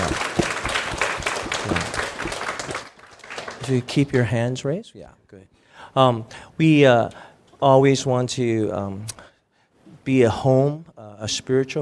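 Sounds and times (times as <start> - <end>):
church congregation applauding to welcome first-time visitors: 0.0 - 3.9
speech: 3.7 - 9.3, 10.1 - 11.8.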